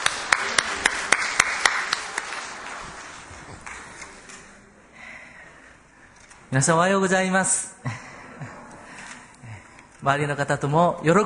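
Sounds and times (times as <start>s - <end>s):
audience applause: 0.0s - 4.0s
speech: 6.5s - 8.0s, 10.0s - 11.2s.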